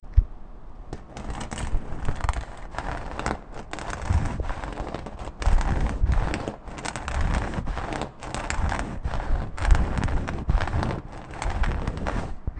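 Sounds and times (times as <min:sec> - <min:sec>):
metal table sound: 0:01.0 - 0:12.5.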